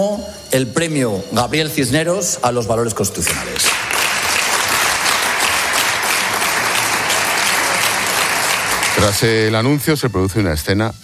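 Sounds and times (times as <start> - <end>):
speech: 0.0 - 4.0, 9.0 - 11.0
parliament applause: 3.2 - 9.6.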